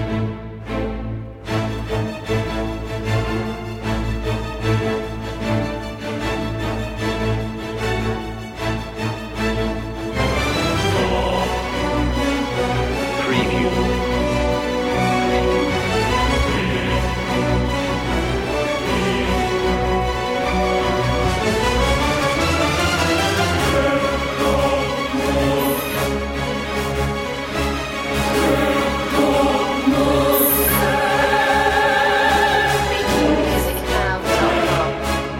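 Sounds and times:
brass: 0.0s - 35.3s
strings: 0.0s - 35.3s
choir: 10.1s - 35.3s.

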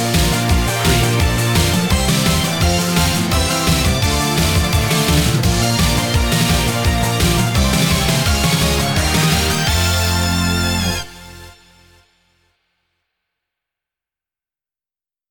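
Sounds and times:
J-pop victory jingle without lead: 0.0s - 11.6s.

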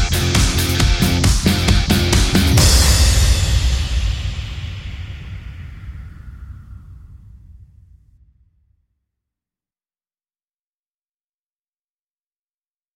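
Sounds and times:
raucous hard rock heavy metal music: 0.0s - 4.7s.

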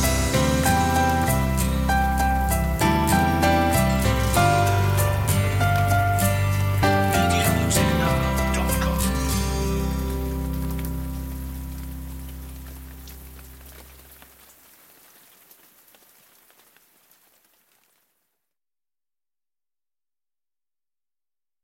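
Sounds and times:
instrumental music: 0.0s - 14.2s.

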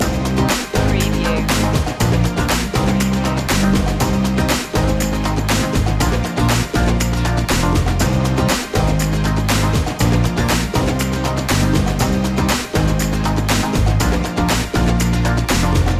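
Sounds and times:
flowing rhythm loop: 0.0s - 15.9s.

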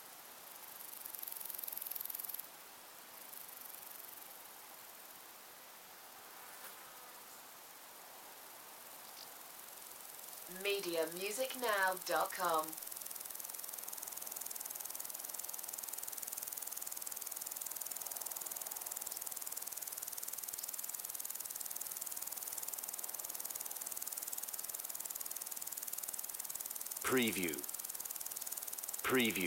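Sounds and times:
cricket chorus: 0.0s - 27.0s, 27.6s - 29.4s
soft breezy hiss: 0.0s - 29.4s
speech: 10.5s - 12.8s, 27.2s - 27.7s, 29.1s - 29.4s.

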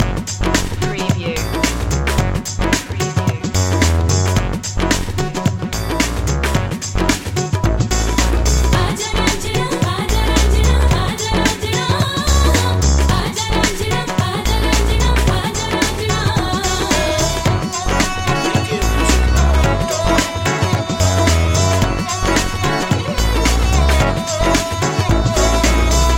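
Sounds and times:
Mumbai groove loop: 0.0s - 26.1s.

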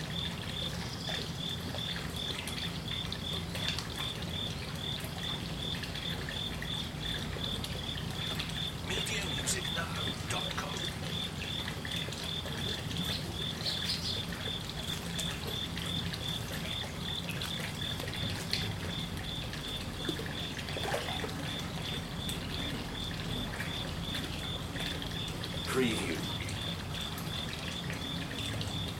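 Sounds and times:
cricket chirping: 0.0s - 28.9s
trickling water: 0.0s - 28.9s.

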